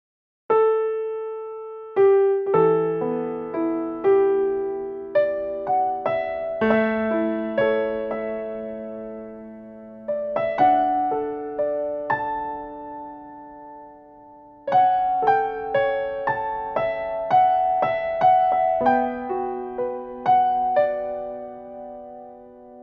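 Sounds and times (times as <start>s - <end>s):
piano: 0.5s - 22.8s.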